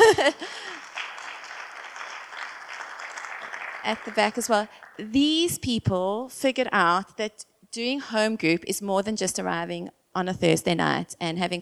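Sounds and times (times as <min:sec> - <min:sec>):
speech: 0:00.1 - 0:00.9, 0:03.8 - 0:11.6
audience clapping: 0:00.4 - 0:05.4.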